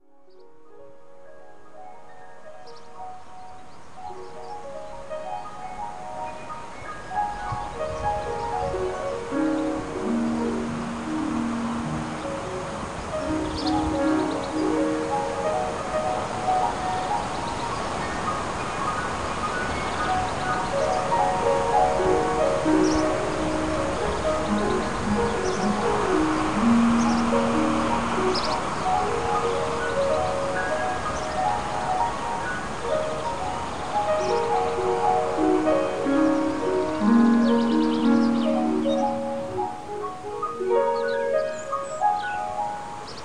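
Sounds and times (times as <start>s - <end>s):
piano piece: 0.0s - 43.2s.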